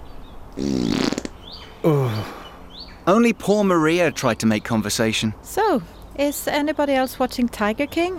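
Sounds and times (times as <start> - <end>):
flatulence after eating whipped cream: 0.6 - 1.4
speech: 3.1 - 8.1.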